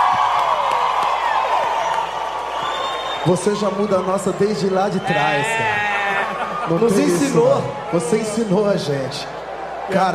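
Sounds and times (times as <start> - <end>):
crowd applause and cheering: 0.0 - 10.1
speech: 3.2 - 5.9, 6.7 - 10.1
laughter: 5.5 - 7.6.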